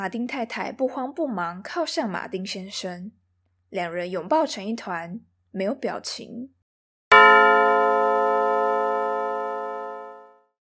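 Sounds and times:
speech: 0:00.0 - 0:06.6
clock striking heavily: 0:07.1 - 0:09.8.

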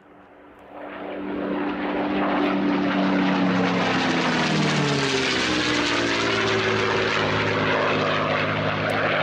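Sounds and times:
Spitfire fighter plane engine roaring as it passes: 0:00.0 - 0:09.2.

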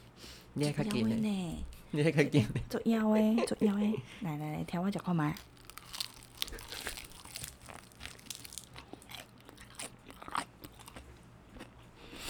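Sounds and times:
speech: 0:00.6 - 0:05.5
crunchy biting and chewing of chicken pieces: 0:05.2 - 0:12.2.

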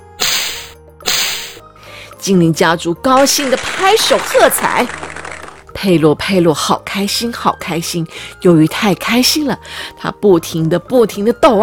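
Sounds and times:
whip cracking: 0:00.0 - 0:01.6
speech: 0:01.8 - 0:05.1, 0:05.8 - 0:11.6.

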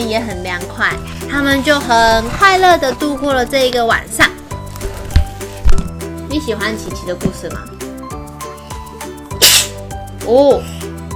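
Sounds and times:
speech: 0:00.0 - 0:04.3, 0:06.3 - 0:07.7, 0:10.2 - 0:10.8
sneeze: 0:09.4 - 0:09.8.

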